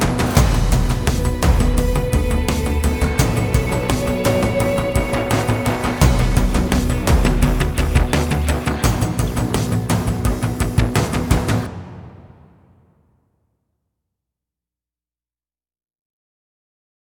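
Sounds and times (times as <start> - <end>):
ambient pre-race music at 85 bpm: 0.0 - 12.7.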